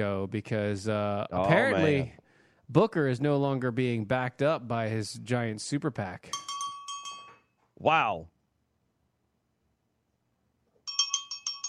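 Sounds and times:
speech: 0.0 - 6.5, 7.8 - 8.3
bell sound effect: 6.3 - 7.4.

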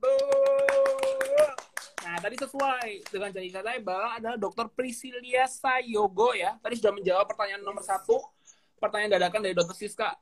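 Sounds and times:
hand clapping: 0.0 - 3.4
speech: 2.2 - 10.2.

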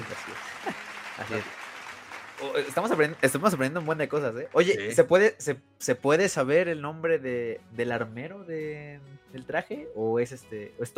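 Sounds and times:
audience applause: 0.0 - 4.9
speech: 1.3 - 1.6, 2.4 - 10.9.

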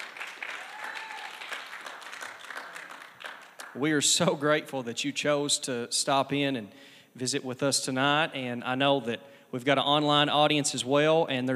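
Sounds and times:
audience at a youth night service applauding performers: 0.0 - 3.8
speech: 3.8 - 11.5.

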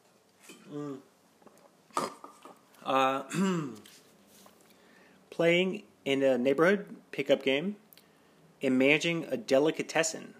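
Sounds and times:
person drinking: 0.5 - 4.0
speech: 0.7 - 1.1, 2.9 - 3.8, 5.4 - 7.8, 8.6 - 10.3.

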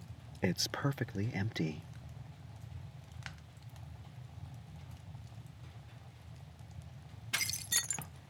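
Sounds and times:
speech: 0.4 - 1.9
picture frame falling and glass breaking: 7.3 - 8.1.

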